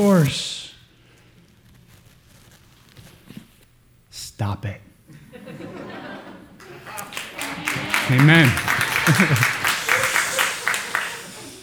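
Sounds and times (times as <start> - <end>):
speech: 0.0 - 0.6, 4.4 - 4.9, 8.1 - 9.6
laughter: 5.1 - 11.6
audience applause: 6.6 - 11.6.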